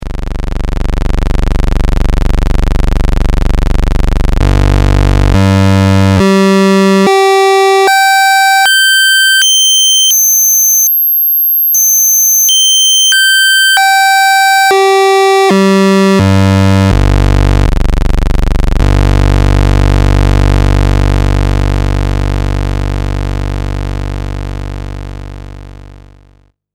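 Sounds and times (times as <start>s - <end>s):
oscillator pulse tone: 0.2s - 25.0s.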